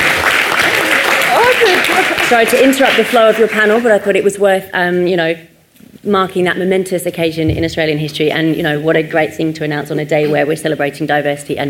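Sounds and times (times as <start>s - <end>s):
audience applause: 0.0s - 3.8s
speech: 1.7s - 11.6s.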